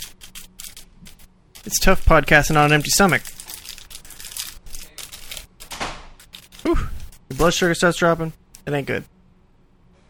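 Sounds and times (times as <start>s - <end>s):
person chewing a cracker: 0.0s - 7.7s
speech: 1.7s - 3.4s, 7.4s - 9.1s.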